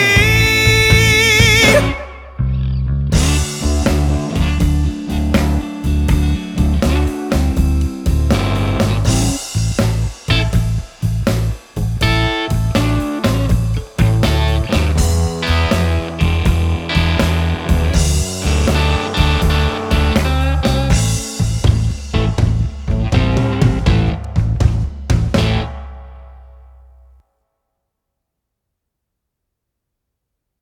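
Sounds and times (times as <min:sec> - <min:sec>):
dinosaur footsteps beat: 0:00.2 - 0:01.9, 0:03.2 - 0:25.7.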